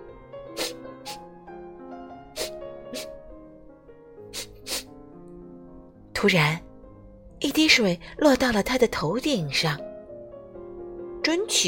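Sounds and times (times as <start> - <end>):
soft music: 0.0 - 11.6
sharp inhaling sniffs: 0.5 - 1.3, 2.4 - 3.2, 4.3 - 5.0
speech: 2.9 - 3.2, 6.2 - 6.7, 7.4 - 9.9, 11.3 - 11.6.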